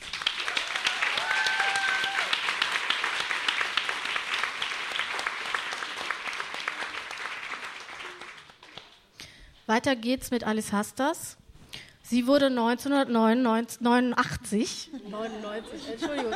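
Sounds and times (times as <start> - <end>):
applause: 0.0 - 9.1
speech: 9.7 - 11.4, 12.1 - 16.3
laughter: 14.9 - 16.3.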